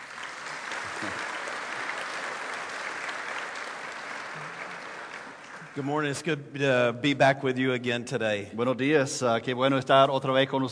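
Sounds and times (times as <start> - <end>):
audience applause at a morning ministry gathering: 0.0 - 6.3
speech: 5.8 - 10.7.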